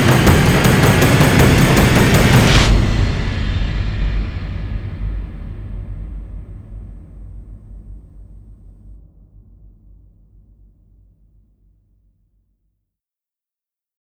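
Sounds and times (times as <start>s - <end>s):
sound effects: 0.0s - 3.4s
drums: 0.0s - 7.0s.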